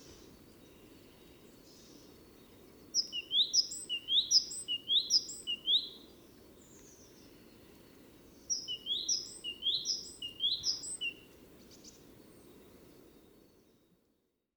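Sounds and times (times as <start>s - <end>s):
faint hiss: 0.0s - 14.3s
Great tit song: 3.0s - 5.9s, 8.5s - 11.2s.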